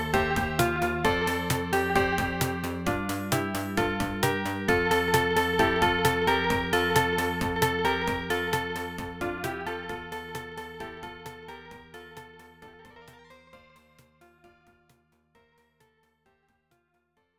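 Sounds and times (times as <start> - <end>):
loading screen background music: 0.0 - 12.3.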